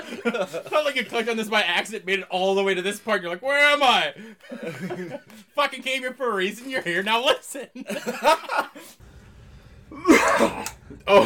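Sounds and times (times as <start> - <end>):
laughter: 0.0 - 1.2, 4.4 - 5.4, 7.8 - 9.0
speech: 0.2 - 9.0, 9.9 - 11.2
phlegmy cough: 10.0 - 11.2.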